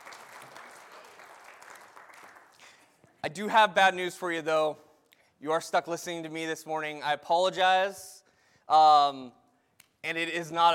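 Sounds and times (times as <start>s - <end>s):
audience applause: 0.0s - 2.8s
speech: 3.2s - 4.8s, 5.4s - 8.1s, 8.7s - 9.4s, 10.0s - 10.7s.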